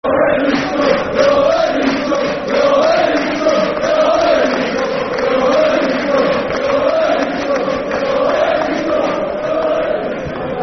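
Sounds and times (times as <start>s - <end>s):
football fans chanting: 0.0s - 10.6s.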